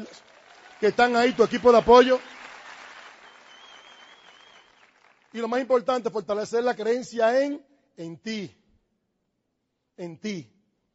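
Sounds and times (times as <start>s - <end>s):
audience applause: 0.0s - 5.5s
speech: 0.1s - 2.3s, 5.3s - 8.6s, 10.0s - 10.5s
whistle-like tone: 3.2s - 4.8s.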